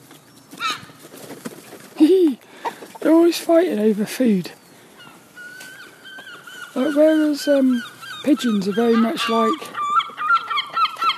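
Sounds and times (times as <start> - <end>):
seagulls squawking: 0.6 - 1.0, 4.7 - 11.1
speech: 3.0 - 4.6, 6.8 - 9.8.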